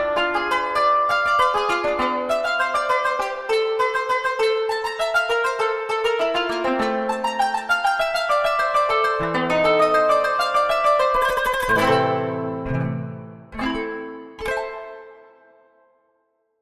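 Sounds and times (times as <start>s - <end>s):
qanun playing: 0.0s - 15.2s.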